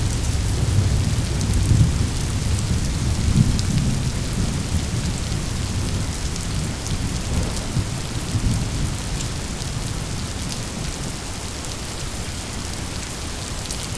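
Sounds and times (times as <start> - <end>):
thunder rolling: 0.0 - 10.1
rain: 0.0 - 13.9.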